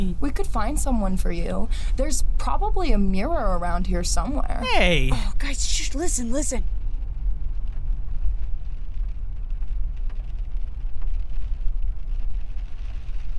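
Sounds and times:
car driving in the rain: 0:00.1 - 0:13.3
speech: 0:00.4 - 0:06.8.

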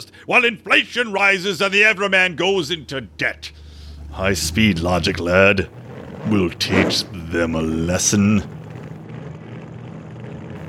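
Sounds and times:
speech: 0:00.2 - 0:08.6
hydroplane engine revving up: 0:02.4 - 0:10.6.

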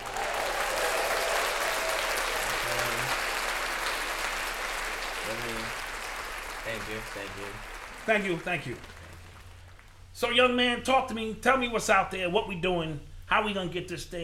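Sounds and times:
crowd applauding: 0:00.0 - 0:10.1
speech: 0:06.7 - 0:09.0, 0:10.2 - 0:14.2.

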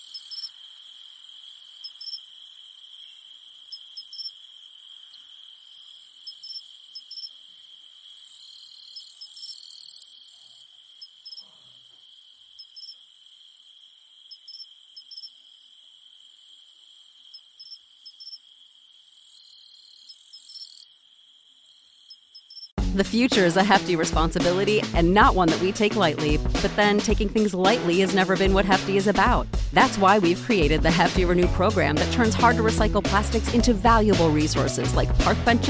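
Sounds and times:
cicadas droning: 0:00.0 - 0:22.8
speech: 0:23.0 - 0:35.6.

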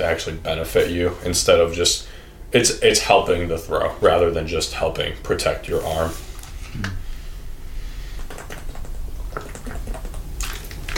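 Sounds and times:
speech: 0:00.0 - 0:07.0
sipping water: 0:05.7 - 0:10.9.

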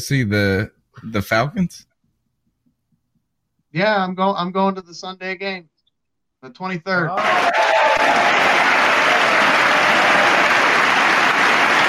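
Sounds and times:
speech: 0:00.0 - 0:01.9, 0:03.7 - 0:05.7, 0:06.4 - 0:08.8
audience applause: 0:07.2 - 0:11.8.

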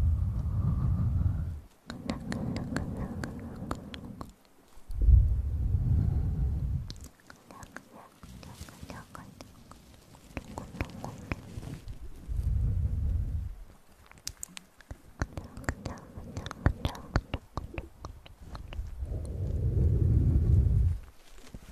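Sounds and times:
low breathy swells: 0:00.0 - 0:13.8, 0:15.2 - 0:21.7
wet mouth clicks, smacks and lip noises: 0:01.8 - 0:04.6, 0:06.8 - 0:11.6, 0:13.9 - 0:19.5.

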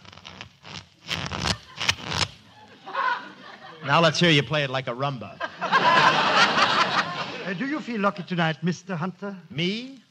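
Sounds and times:
playing cards being shuffled: 0:00.0 - 0:02.5
laughter: 0:01.5 - 0:08.0
speech: 0:03.9 - 0:06.2, 0:07.4 - 0:10.0.

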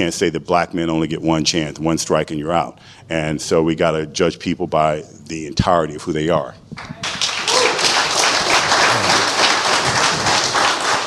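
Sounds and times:
speech: 0:00.0 - 0:07.3
audience applause: 0:06.9 - 0:11.0.

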